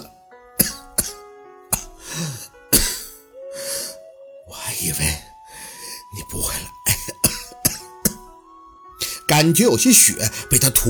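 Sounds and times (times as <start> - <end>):
person coughing: 0.6 - 3.9, 6.8 - 8.2
speech: 4.8 - 5.3, 6.1 - 6.8, 9.3 - 10.8.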